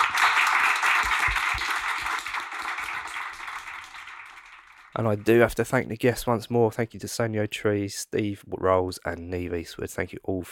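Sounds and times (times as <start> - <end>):
audience round of applause: 0.0 - 5.5
speech: 5.0 - 10.5.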